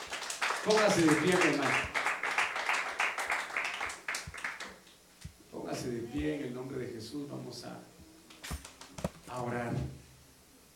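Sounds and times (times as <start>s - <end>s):
audience clapping: 0.0s - 4.9s
speech: 0.6s - 2.0s, 5.9s - 8.0s, 9.3s - 10.0s.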